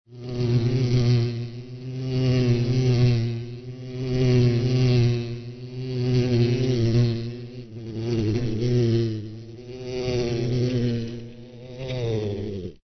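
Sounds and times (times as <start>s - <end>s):
cartoon bee buzzing: 0.1s - 12.8s.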